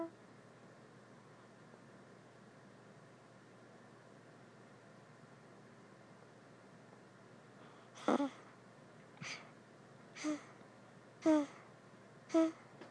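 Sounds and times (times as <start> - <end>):
baby making satisfied cooing sounds after feeding: 8.0 - 8.4, 11.2 - 11.6, 12.3 - 12.6.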